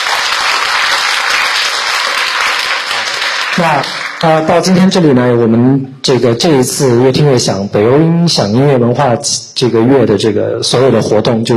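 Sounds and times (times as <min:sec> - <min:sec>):
warm audience applause: 0:00.0 - 0:04.5
speech: 0:03.6 - 0:11.5.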